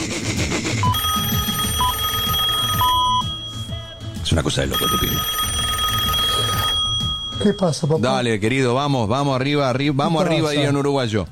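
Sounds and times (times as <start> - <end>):
telephone ringing: 0.8 - 8.4
speech: 4.3 - 5.5, 7.4 - 11.3.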